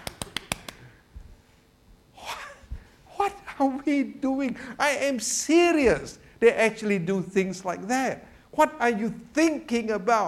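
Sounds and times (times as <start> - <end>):
audience clapping hands: 0.0 - 0.8
speech: 3.6 - 10.2.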